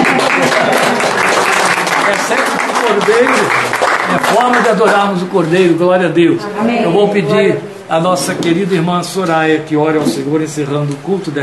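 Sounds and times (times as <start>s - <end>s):
audience applause: 0.0s - 5.2s
speech: 2.3s - 11.4s.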